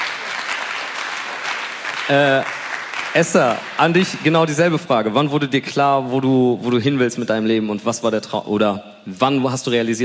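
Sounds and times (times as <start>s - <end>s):
audience applause: 0.0s - 4.7s
speech: 2.1s - 10.0s.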